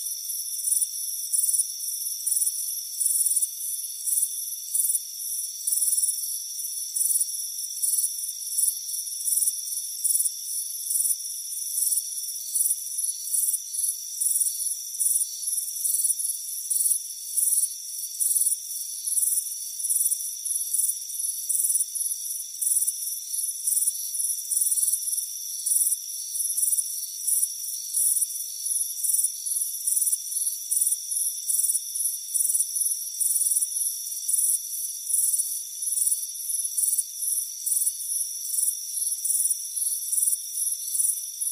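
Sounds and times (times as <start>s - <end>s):
crickets chirping: 0.0s - 41.4s.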